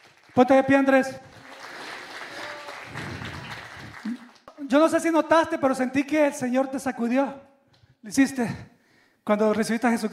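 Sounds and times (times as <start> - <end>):
speech: 0.4 - 1.4, 4.7 - 10.1
audience applause: 1.2 - 4.5.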